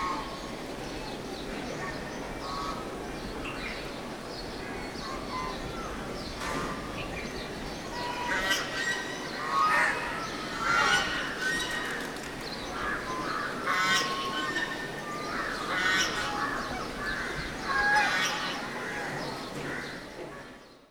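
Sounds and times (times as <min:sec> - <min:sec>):
birds in a city place in South India: 0:00.0 - 0:20.9
animals in a city place in South India: 0:07.9 - 0:20.5.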